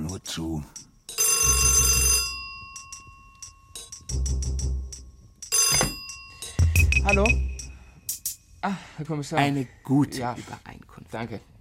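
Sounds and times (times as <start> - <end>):
speech: 0.2 - 0.8, 7.1 - 7.5, 8.6 - 11.5
old-fashioned telephone bell ringing: 1.2 - 4.0, 5.5 - 7.0.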